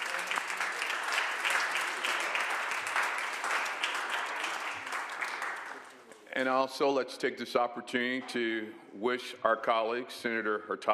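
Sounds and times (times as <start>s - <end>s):
applause in the state senate chamber: 0.0s - 6.1s
speech: 6.4s - 10.9s.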